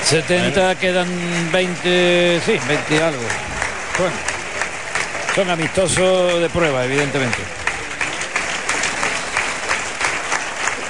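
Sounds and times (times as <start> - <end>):
stadium crowd ovation with applause and cheering: 0.0 - 10.8
speech: 0.1 - 4.3, 5.4 - 7.6.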